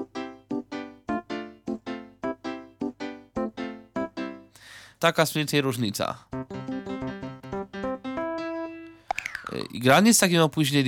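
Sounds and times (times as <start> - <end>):
piano chord on Yamaha and software synthesizer: 0.0 - 4.6, 6.3 - 9.1
speech: 5.0 - 6.3, 9.5 - 10.8.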